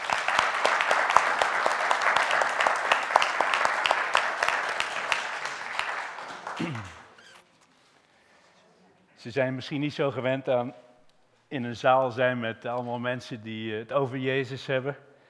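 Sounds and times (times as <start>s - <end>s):
audience applause: 0.0s - 7.2s
speech: 9.2s - 10.9s, 11.5s - 15.1s.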